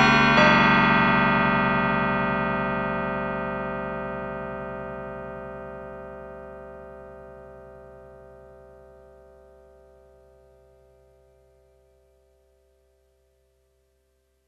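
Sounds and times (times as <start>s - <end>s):
bells on a Yamaha TX802 synthesizer: 0.0s - 6.8s.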